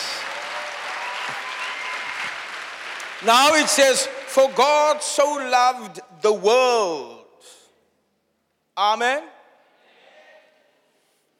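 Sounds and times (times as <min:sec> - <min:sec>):
audience clapping: 0:00.0 - 0:05.1
speech: 0:03.2 - 0:07.6, 0:08.8 - 0:09.4.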